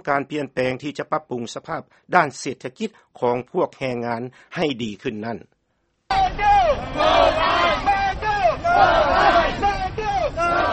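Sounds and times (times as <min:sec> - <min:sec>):
speech: 0:00.0 - 0:07.9, 0:08.8 - 0:09.7
protesters shouting while marching: 0:06.1 - 0:10.7.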